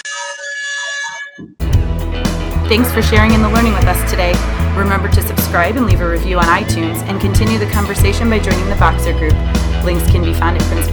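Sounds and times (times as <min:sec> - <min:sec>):
speech: 0:01.4 - 0:01.6, 0:02.7 - 0:10.9
noisy burst: 0:01.8 - 0:08.6
air horn blast: 0:02.0 - 0:08.4.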